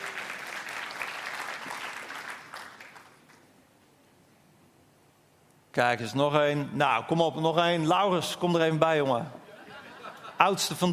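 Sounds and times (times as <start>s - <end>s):
audience applause: 0.0s - 3.3s
speech: 5.8s - 9.4s, 10.4s - 10.9s
laughter: 9.5s - 10.8s.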